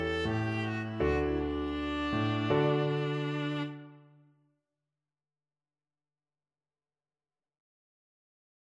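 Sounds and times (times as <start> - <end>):
viola playing: 0.0 - 4.1.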